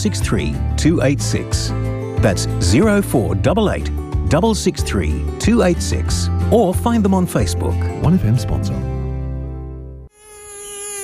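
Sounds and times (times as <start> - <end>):
speech: 0.0 - 8.9
mosquito buzzing: 10.1 - 11.0.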